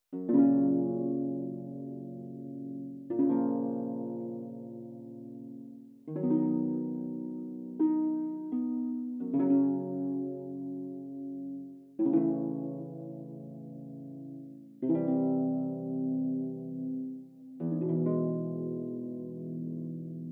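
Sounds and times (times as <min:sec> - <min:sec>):
harps: 0:00.1 - 0:20.3.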